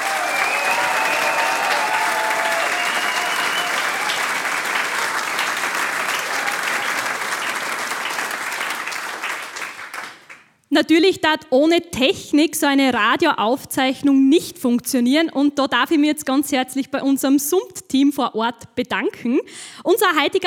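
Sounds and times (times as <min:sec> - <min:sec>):
audience applause: 0:00.0 - 0:10.4
speech: 0:10.8 - 0:20.4.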